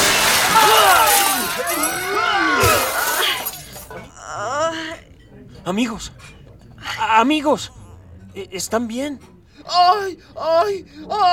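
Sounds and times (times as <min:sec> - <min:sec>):
crash of falling among tables: 0:00.0 - 0:03.9
glass shattering: 0:00.0 - 0:04.1
whine-like vocal cries: 0:00.1 - 0:05.2, 0:06.8 - 0:11.3
speech: 0:05.7 - 0:06.3, 0:07.0 - 0:07.8, 0:08.4 - 0:11.3.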